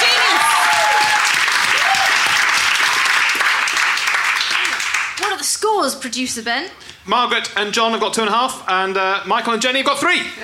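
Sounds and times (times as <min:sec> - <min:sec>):
audience applause: 0:00.0 - 0:05.3
speech: 0:05.8 - 0:10.4.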